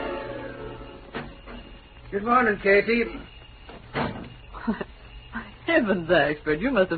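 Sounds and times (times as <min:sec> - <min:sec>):
door closing quietly without slamming: 0:01.0 - 0:01.8, 0:03.7 - 0:04.4
speech: 0:02.2 - 0:03.3, 0:05.8 - 0:06.9.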